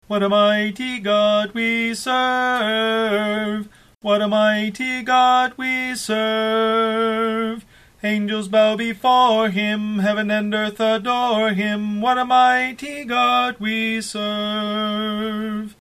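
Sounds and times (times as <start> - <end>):
tenor singing: 0.0 - 15.8.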